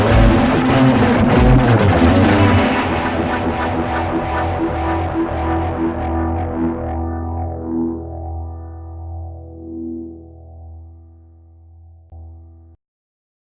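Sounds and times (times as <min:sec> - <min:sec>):
electronic background music: 0:00.0 - 0:09.8.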